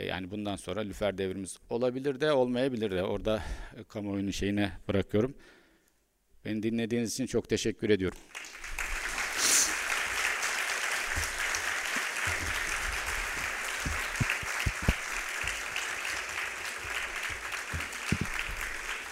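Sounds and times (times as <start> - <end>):
speech: 0.0 - 5.6, 6.4 - 8.7
audience applause in a hall: 8.2 - 19.0.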